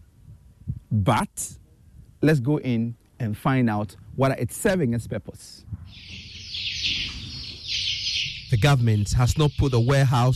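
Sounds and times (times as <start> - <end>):
speech: 0.9 - 1.6, 2.2 - 6.2, 8.5 - 10.3
chickens clucking in a warehouse: 5.9 - 10.2.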